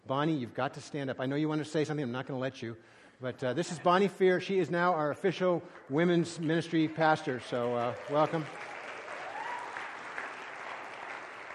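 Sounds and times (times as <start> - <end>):
speech: 0.1 - 8.7
audience applause: 5.9 - 11.5.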